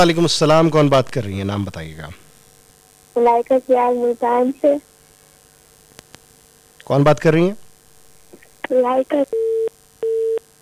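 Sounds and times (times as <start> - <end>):
speech: 0.0 - 2.2, 3.2 - 4.9, 6.9 - 7.6, 8.7 - 9.7
telephone line beeps after a call disconnects: 9.3 - 10.4.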